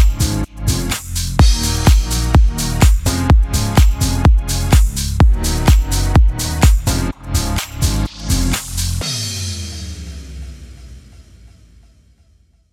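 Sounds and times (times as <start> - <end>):
Irish folk house music bed in D sharp minor: 0.0 - 9.0.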